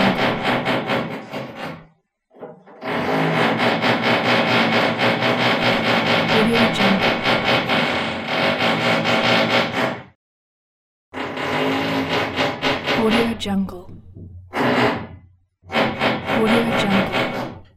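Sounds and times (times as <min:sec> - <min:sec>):
neighbours drilling walls: 0:00.0 - 0:01.8, 0:02.8 - 0:10.1, 0:11.2 - 0:13.4, 0:15.7 - 0:17.7.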